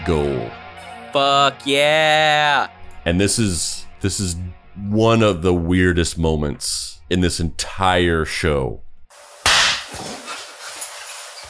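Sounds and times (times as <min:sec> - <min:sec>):
speech: 0:00.0 - 0:08.8
firecracker bang: 0:09.4 - 0:10.4.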